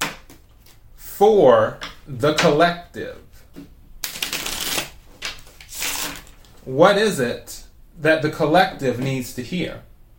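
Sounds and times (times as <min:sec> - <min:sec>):
speech: 0:01.2 - 0:03.7, 0:06.6 - 0:09.9
tarot cards being shuffled: 0:04.0 - 0:06.6.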